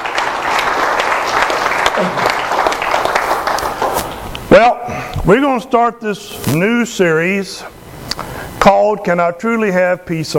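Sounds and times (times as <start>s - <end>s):
audience applauding: 0.0s - 4.1s
speech: 2.0s - 2.4s, 4.5s - 7.8s, 8.6s - 10.3s.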